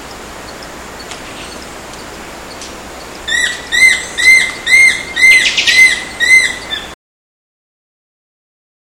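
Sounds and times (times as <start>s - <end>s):
yellow browed woodpecker: 0.5s - 6.9s.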